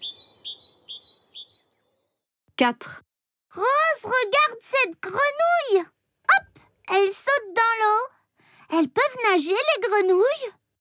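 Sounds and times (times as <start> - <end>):
tit chirping: 0.0 - 2.3
speech: 2.6 - 6.0, 6.9 - 10.6.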